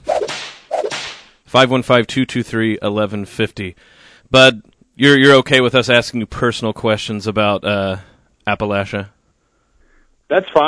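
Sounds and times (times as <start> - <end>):
whip crack sound effect: 0.0 - 1.4
speech: 1.5 - 9.2, 10.3 - 10.6.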